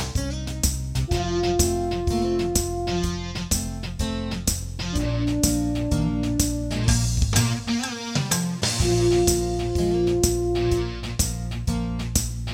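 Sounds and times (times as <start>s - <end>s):
funky beat: 0.0s - 12.5s
brass practice: 1.1s - 3.9s, 4.9s - 7.8s, 8.8s - 11.4s.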